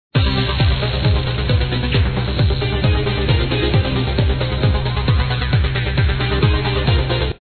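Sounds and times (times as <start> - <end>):
combat music: 0.2 - 7.3.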